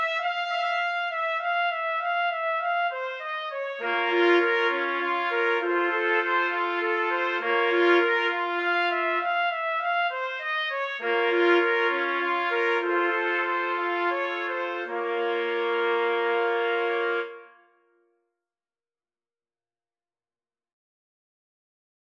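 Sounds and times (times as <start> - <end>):
trumpet quartet playing: 0.0 - 17.6.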